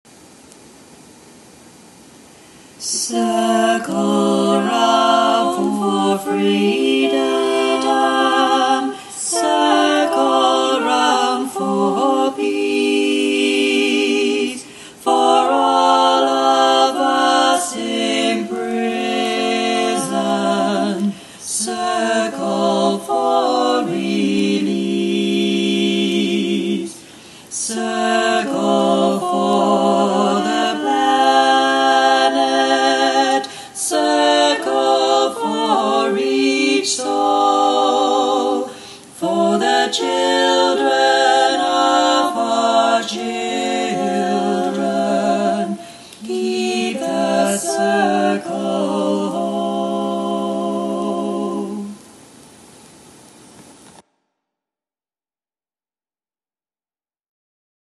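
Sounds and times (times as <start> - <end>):
circle chant: 2.8 - 52.1.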